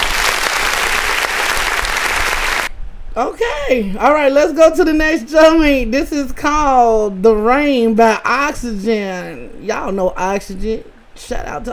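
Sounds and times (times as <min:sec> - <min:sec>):
applause: 0:00.0 - 0:02.7
speech: 0:03.2 - 0:11.7.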